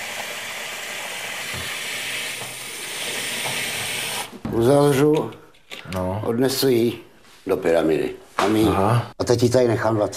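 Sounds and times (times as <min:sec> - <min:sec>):
tap water filling a container: 0:00.0 - 0:04.4
speech: 0:04.5 - 0:10.1.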